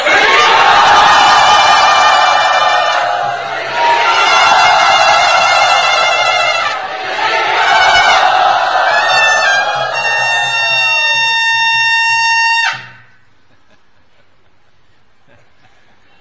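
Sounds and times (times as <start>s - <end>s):
crowd cheering and shouting to welcome a guest at Sri Radha Gopinath Temple: 0.0s - 11.9s.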